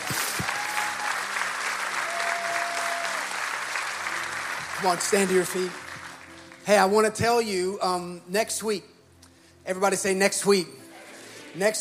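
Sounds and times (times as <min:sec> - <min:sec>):
audience applauding: 0:00.0 - 0:06.7
faint whoops and voices: 0:00.1 - 0:01.3, 0:02.0 - 0:03.3
speech: 0:04.8 - 0:05.8, 0:06.6 - 0:08.9, 0:09.6 - 0:10.8, 0:11.6 - 0:11.7.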